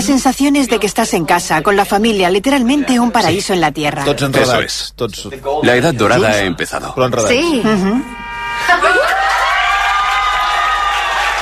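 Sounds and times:
speech: 0.1 - 9.4
excited high voices whooping: 8.6 - 11.4
small group applauding: 8.8 - 11.4.

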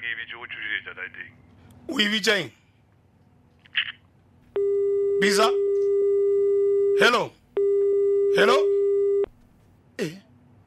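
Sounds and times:
speech: 0.4 - 2.6, 5.2 - 5.6, 7.0 - 7.4, 8.3 - 8.8, 10.0 - 10.2
telephone busy signal after the caller hung up: 4.6 - 9.3.

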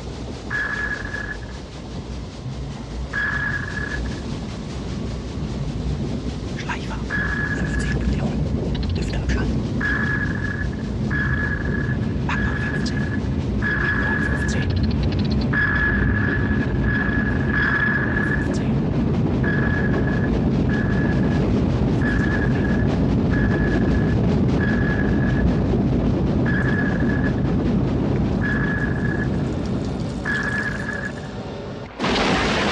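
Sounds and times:
low rumble: 0.0 - 32.7
submarine sonar pings from a film: 0.5 - 1.4, 3.1 - 4.1, 7.1 - 7.8, 9.8 - 14.4, 15.5 - 18.5, 19.4 - 21.4, 26.4 - 27.4, 28.4 - 29.4, 30.2 - 31.3.

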